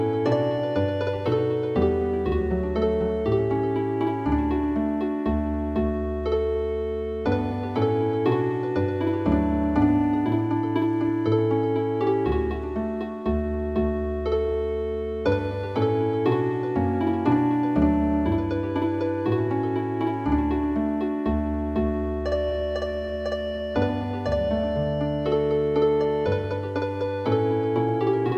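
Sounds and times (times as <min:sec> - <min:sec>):
healing harp music: 0:00.0 - 0:28.3.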